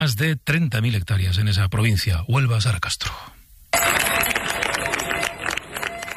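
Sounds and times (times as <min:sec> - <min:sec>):
speech: 0:00.0 - 0:03.4
townspeople of Niebla applauding: 0:03.8 - 0:06.1.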